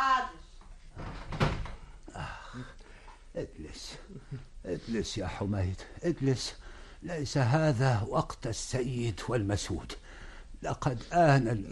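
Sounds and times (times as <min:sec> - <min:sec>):
door being closed: 0:01.0 - 0:01.9
speech: 0:03.4 - 0:10.0, 0:10.6 - 0:11.7.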